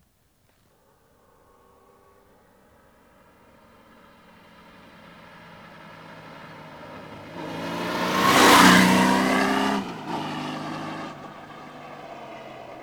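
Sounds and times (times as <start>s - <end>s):
Honda GL 1400 Gold Wing motorcycle engine: 3.4s - 12.8s.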